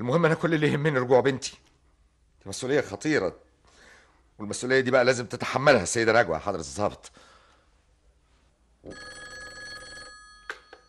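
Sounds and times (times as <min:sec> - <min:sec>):
speech: 0:00.0 - 0:01.7, 0:02.4 - 0:03.5, 0:04.4 - 0:07.3, 0:08.8 - 0:09.2
telephone bell ringing: 0:08.8 - 0:10.8.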